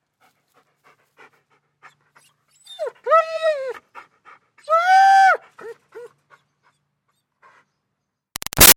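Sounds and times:
German Shepherd dog whining and calling out: 2.5 - 3.8.

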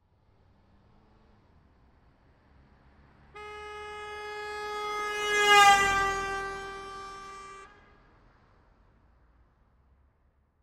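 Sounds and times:
1986 Ford Escort driving by right to left at 55 mph: 2.9 - 8.0.

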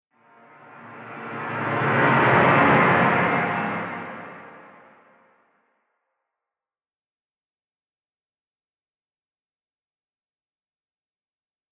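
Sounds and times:
scary horror whoosh: 0.3 - 5.3.

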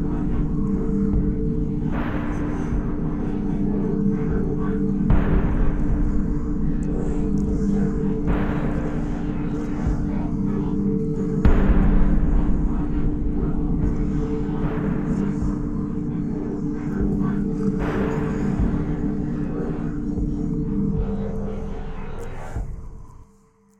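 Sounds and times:
dark eerie metallic pulsing tonal drone: 0.0 - 23.6.

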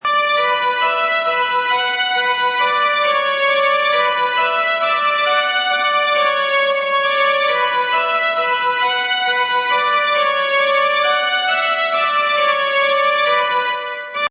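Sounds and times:
horror violin loop in B minor at 135 bpm: 0.0 - 14.2.

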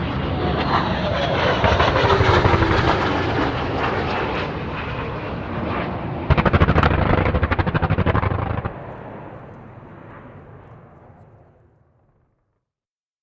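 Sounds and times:
RAF Hawker Siddeley Harrier jets flying overhead: 0.0 - 11.9
tank engine noise in foreground: 0.6 - 9.9
Harrier cannon firing: 1.6 - 4.9, 5.6 - 9.0.

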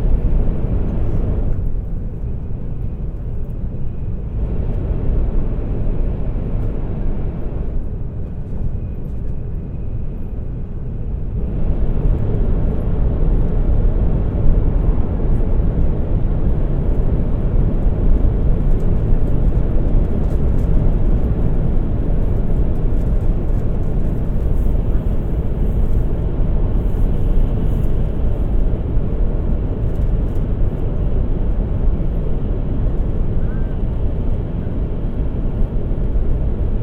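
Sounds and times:
Shinkansen N700 train interior in tunnel in Japan: 0.0 - 36.8.

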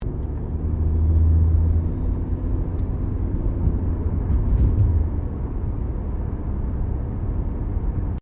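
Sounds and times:
Subaru Liberty car accelerating heard from interior: 0.0 - 8.1.

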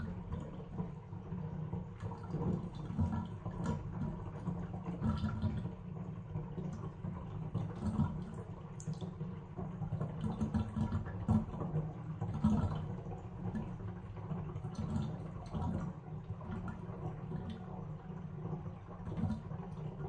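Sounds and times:
household bathtub draining water in a bathroom: 0.0 - 20.0.

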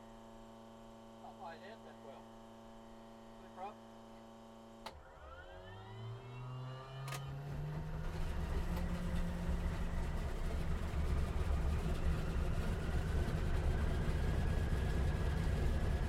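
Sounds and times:
CA-13 Boomerang aircraft startup heard from interior: 4.9 - 16.0.

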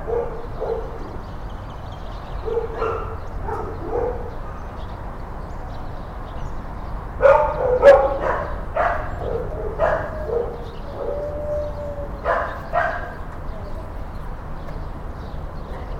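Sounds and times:
dog barking in kennels: 0.0 - 1.2, 2.4 - 4.8, 7.2 - 13.7.

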